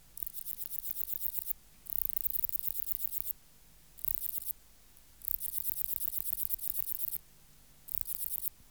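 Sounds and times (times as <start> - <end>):
black-margined bush-cricket song: 0.2 - 3.4, 4.0 - 4.5, 5.2 - 7.2, 7.9 - 8.6.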